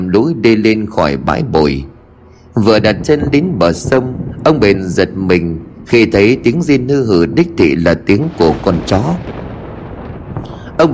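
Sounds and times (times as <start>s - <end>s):
speech: 0.1s - 1.9s, 2.6s - 9.3s, 10.8s - 10.9s
deep rolling thunder clap: 2.6s - 10.9s.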